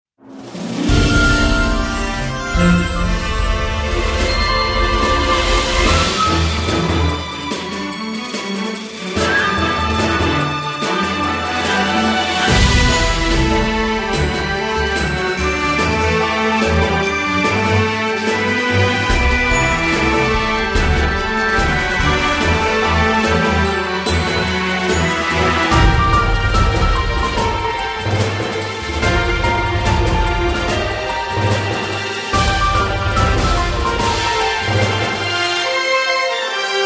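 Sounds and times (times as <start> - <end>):
battle background music: 0.5 - 35.8.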